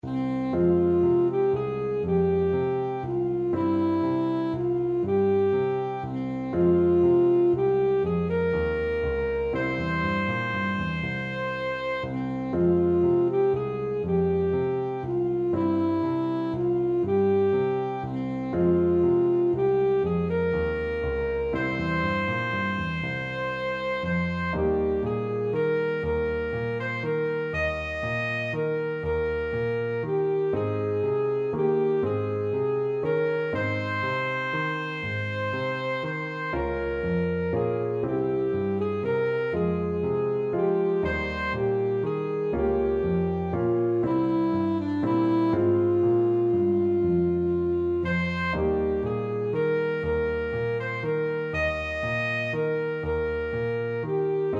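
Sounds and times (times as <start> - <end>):
saxophone: 0.0 - 54.5.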